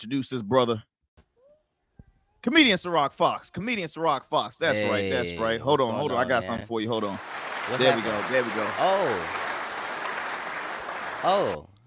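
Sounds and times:
speech: 0:00.0 - 0:00.9, 0:02.4 - 0:09.4, 0:11.2 - 0:11.7
crowd applause from a live-audience sound effect: 0:06.1 - 0:11.6.

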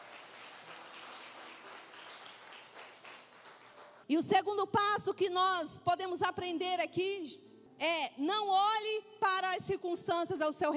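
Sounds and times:
audience applause: 0:00.0 - 0:04.0
speech: 0:04.1 - 0:10.7.

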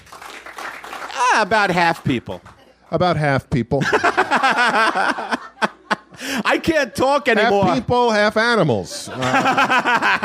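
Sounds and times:
audience applause: 0:00.0 - 0:02.3
speech: 0:01.4 - 0:05.4, 0:06.2 - 0:10.2
laughter: 0:03.8 - 0:08.2, 0:08.8 - 0:10.2.

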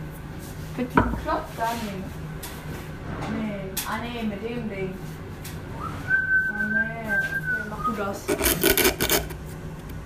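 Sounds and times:
speech: 0:00.8 - 0:05.3, 0:06.7 - 0:09.2
sanding tool sanding wood: 0:08.3 - 0:09.3.

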